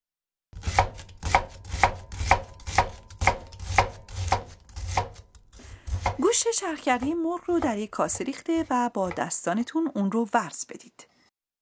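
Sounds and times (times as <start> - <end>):
knife dicing onion: 0.6 - 9.8
speech: 6.4 - 11.1.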